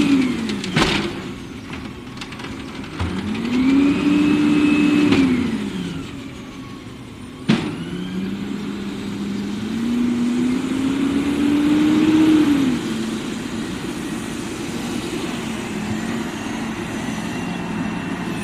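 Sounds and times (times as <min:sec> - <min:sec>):
garbage truck engine rumbling and revving: 0:00.0 - 0:18.4
sharp knocks and clanks: 0:00.4 - 0:03.7.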